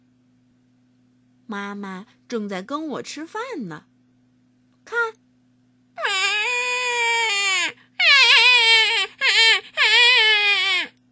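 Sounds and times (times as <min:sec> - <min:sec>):
faint steady hum: 0:00.0 - 0:11.1
speech: 0:01.5 - 0:03.9
voice imitating a hungry piglet crying: 0:06.0 - 0:10.9.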